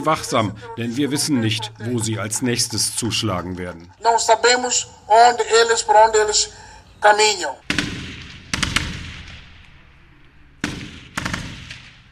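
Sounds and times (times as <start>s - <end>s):
laughter: 0.0s - 3.6s
speech: 0.0s - 7.8s
automatic gunfire during military training exercise: 7.7s - 9.4s, 10.6s - 12.0s.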